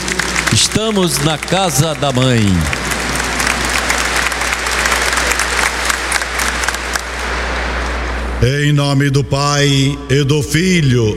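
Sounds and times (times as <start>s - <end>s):
audience applause: 0.0s - 8.1s
speech: 0.6s - 2.9s, 8.4s - 11.1s.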